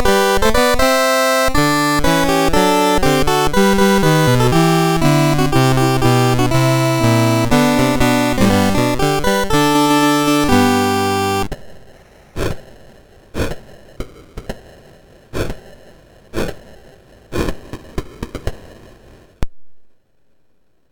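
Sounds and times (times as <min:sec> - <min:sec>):
chiptune music on a MOS6581R2 sound chip: 0:00.0 - 0:11.5.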